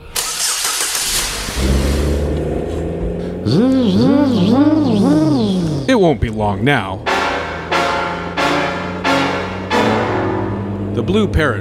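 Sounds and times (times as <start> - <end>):
car engine starting: 0.0 - 11.5
speech: 3.5 - 7.1, 11.0 - 11.5.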